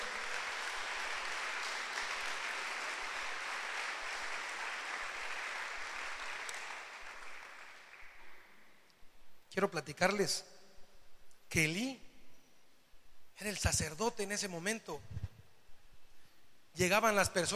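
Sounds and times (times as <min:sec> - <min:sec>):
audience applause: 0:00.0 - 0:08.6
speech: 0:09.6 - 0:10.5, 0:11.5 - 0:12.0, 0:13.4 - 0:15.2, 0:16.8 - 0:17.5.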